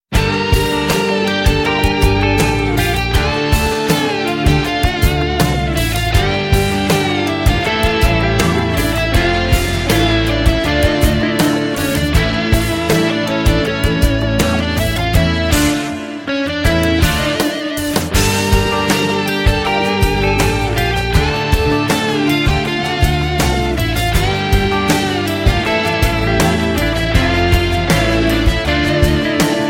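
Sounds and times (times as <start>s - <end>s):
Anatolian rock music: 0.0s - 29.6s.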